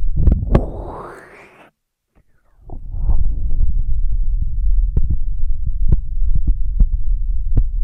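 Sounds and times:
deep muffled rumble: 0:00.1 - 0:01.7, 0:02.7 - 0:07.7
rising rushing swell: 0:00.3 - 0:01.7.

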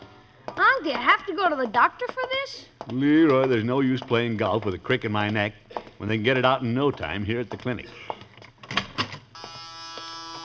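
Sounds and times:
speech: 0:00.5 - 0:08.2
clinic door buzzer: 0:09.3 - 0:10.4.

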